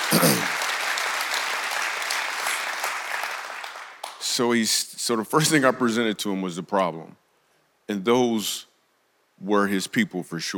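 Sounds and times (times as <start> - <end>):
audience clapping: 0.0 - 4.6
speech: 4.4 - 7.2, 7.9 - 8.7, 9.4 - 10.5.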